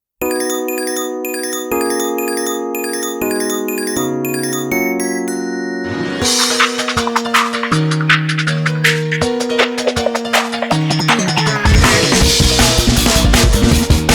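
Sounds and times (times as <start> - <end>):
instrumental music: 0.2 - 14.0.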